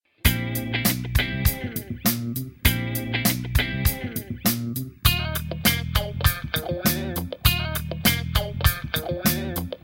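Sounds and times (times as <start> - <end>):
instrumental music: 0.2 - 9.8.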